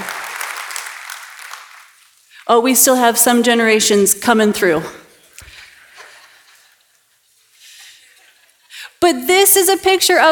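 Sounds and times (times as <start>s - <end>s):
hand clapping for children: 0.0s - 2.2s
speech: 2.5s - 5.0s, 9.1s - 10.2s.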